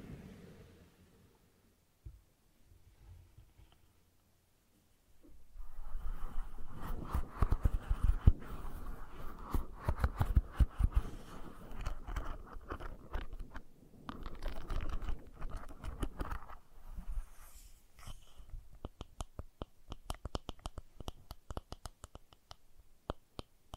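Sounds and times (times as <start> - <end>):
brushing and scratching strokes: 5.6 - 19.2.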